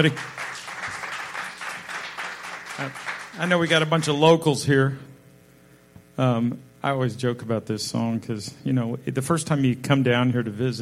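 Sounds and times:
speech: 0.0 - 0.4, 2.8 - 5.1, 6.2 - 10.8
audience applause: 0.0 - 3.9.

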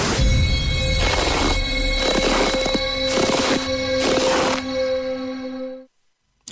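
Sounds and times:
ringing bell-like tone: 0.2 - 5.9
scuffing footsteps: 1.0 - 4.7.

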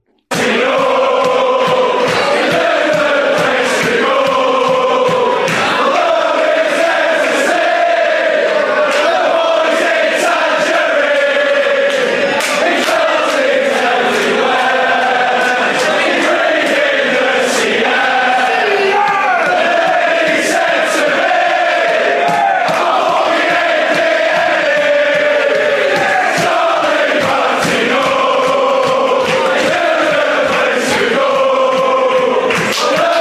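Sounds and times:
football supporters chanting in stadium catacombs: 0.3 - 33.2.

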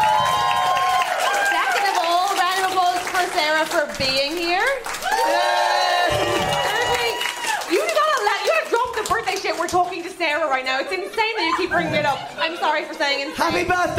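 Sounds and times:
small group cheering and whooping: 0.0 - 2.3, 4.9 - 8.5
scattered clapping: 0.0 - 10.5
speech: 3.4 - 5.4, 9.2 - 13.9
laughter: 10.7 - 13.9.

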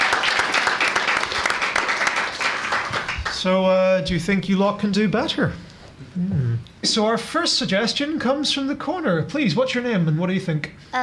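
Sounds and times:
crowd applause: 0.0 - 3.5
speech: 3.4 - 11.0.

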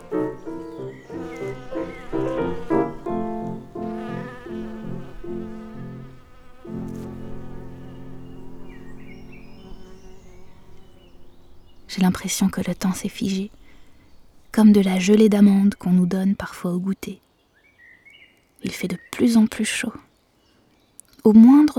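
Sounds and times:
bumblebees buzzing among flowers: 0.0 - 15.3
speech: 11.9 - 13.6, 14.6 - 17.2, 18.6 - 20.1, 21.2 - 21.7.

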